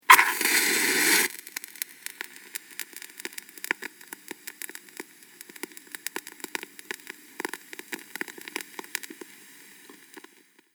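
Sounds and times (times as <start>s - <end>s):
match being lit: 0.0s - 2.4s
match flame burning: 0.1s - 10.3s.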